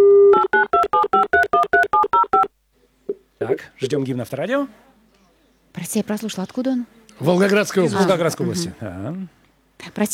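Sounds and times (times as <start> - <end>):
telephone dial tone: 0.0 - 2.5
speech: 3.8 - 4.9, 5.8 - 10.1.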